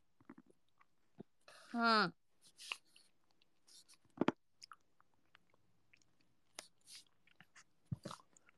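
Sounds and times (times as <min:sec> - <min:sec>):
speech: 0:01.7 - 0:02.8
person eating ice cream: 0:02.6 - 0:08.5.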